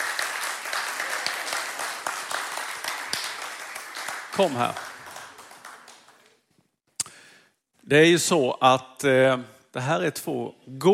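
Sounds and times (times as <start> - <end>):
crowd applauding: 0.0 - 6.4
speech: 4.4 - 4.8, 7.9 - 10.9.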